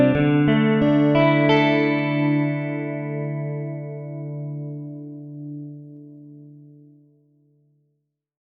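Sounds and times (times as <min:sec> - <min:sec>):
film music cue without flute: 0:00.0 - 0:06.2.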